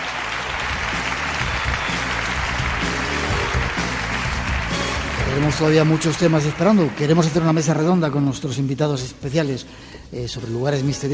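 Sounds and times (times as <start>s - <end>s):
audience applause in an auditorium: 0.0s - 8.1s
speech: 5.4s - 11.1s.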